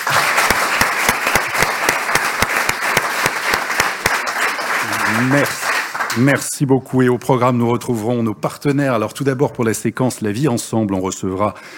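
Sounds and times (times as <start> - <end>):
audience applause: 0.0 - 6.5
speech: 5.2 - 11.7.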